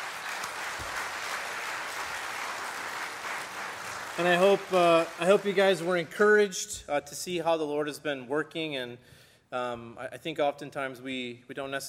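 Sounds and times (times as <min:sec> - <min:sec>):
audience applause: 0:00.0 - 0:06.1
speech: 0:04.2 - 0:11.8.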